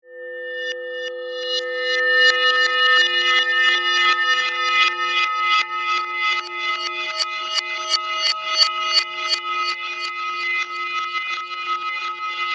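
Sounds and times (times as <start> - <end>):
eerie reversed bells musical production element: 0.1 - 12.4.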